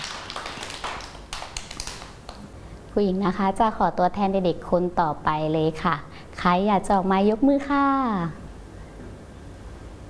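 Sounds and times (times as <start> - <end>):
children clapping for a classmate in a group activity: 0.0 - 2.5
speech: 2.9 - 8.4.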